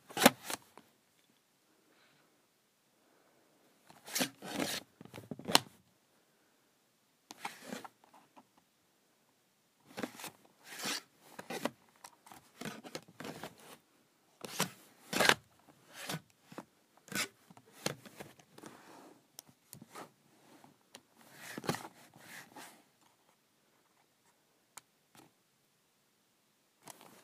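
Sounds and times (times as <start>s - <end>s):
calculator cover sliding on and off: 0.1s - 0.7s, 3.9s - 5.7s, 7.3s - 8.0s, 9.9s - 13.8s, 14.4s - 19.0s, 21.2s - 22.8s.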